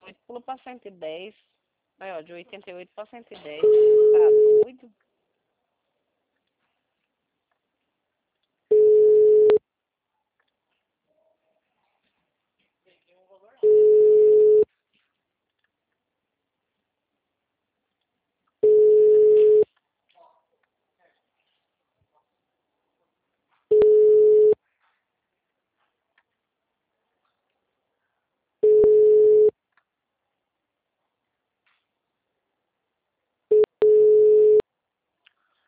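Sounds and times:
speech: 0.3s - 5.1s
ringback tones of an unanswered phone call: 3.6s - 4.7s, 8.7s - 9.6s, 13.6s - 14.7s, 18.6s - 19.6s, 23.7s - 24.6s, 28.6s - 29.5s, 33.5s - 34.6s.

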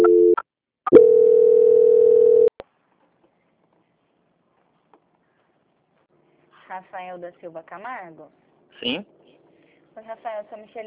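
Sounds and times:
telephone line tone during a call transfer to a bank's quality department: 0.0s - 2.5s
speech: 6.8s - 9.2s, 10.0s - 10.8s.

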